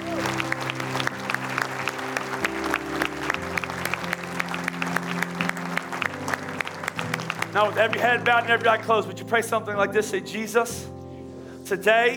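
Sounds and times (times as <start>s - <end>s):
church audience clapping: 0.0s - 9.1s
speech: 7.6s - 10.9s, 11.7s - 12.1s.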